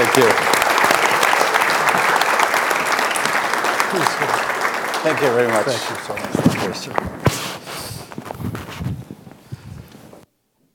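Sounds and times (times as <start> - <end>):
applause from a large crowd: 0.0 - 7.2
speech: 0.2 - 0.5, 5.0 - 7.5.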